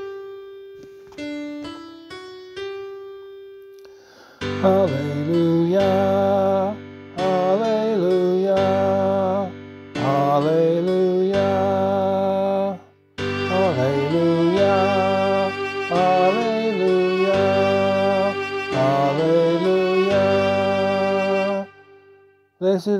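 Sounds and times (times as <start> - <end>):
gospel singing: 4.6 - 22.9.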